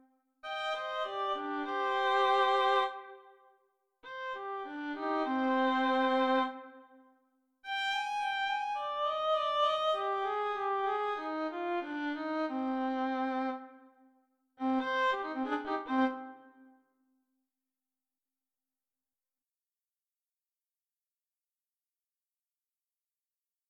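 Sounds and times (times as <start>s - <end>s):
solo violin piece: 0.4s - 3.3s, 4.0s - 6.8s, 7.6s - 13.8s, 14.6s - 16.6s.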